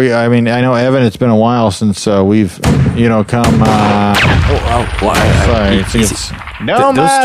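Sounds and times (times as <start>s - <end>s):
speech: 0.0s - 7.2s
gunshots at a shooting range: 2.6s - 7.2s.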